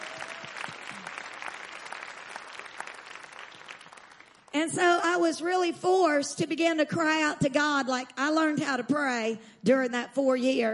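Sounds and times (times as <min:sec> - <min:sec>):
clapping: 0:00.0 - 0:04.6
speech: 0:04.6 - 0:10.7.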